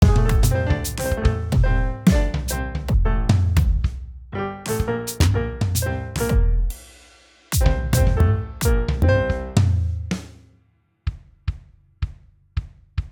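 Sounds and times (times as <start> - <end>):
GarageBand MIDI music: 0.0 - 4.0, 4.7 - 6.9, 7.5 - 10.2.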